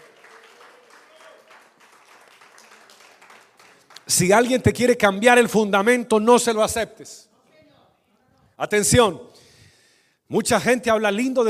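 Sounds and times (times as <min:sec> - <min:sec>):
audience applause: 0:00.0 - 0:04.6
speech: 0:04.1 - 0:07.3, 0:08.6 - 0:09.4, 0:10.3 - 0:11.4.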